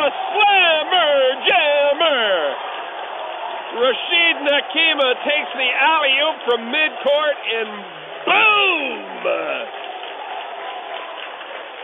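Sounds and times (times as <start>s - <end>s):
basketball crowd roaring and cheering after a dunk: 0.0s - 11.8s
speech: 3.9s - 9.8s.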